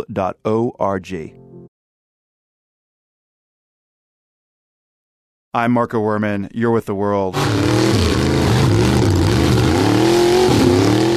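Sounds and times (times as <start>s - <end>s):
speech: 0.0s - 1.4s, 5.5s - 9.0s
two oversized pickup truck engines revving in a mud tug of war: 7.4s - 11.1s.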